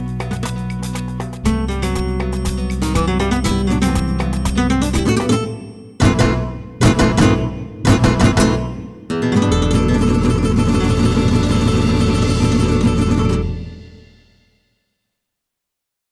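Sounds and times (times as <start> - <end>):
flamenco guitar: 0.0 - 14.2
trumpet: 10.5 - 14.0.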